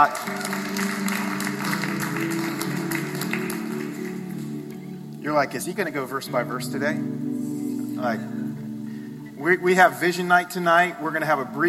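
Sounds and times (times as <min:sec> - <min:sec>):
speech: 0:00.0 - 0:00.6, 0:05.2 - 0:07.2, 0:08.0 - 0:08.4, 0:09.4 - 0:11.6
audience applause: 0:00.0 - 0:04.8.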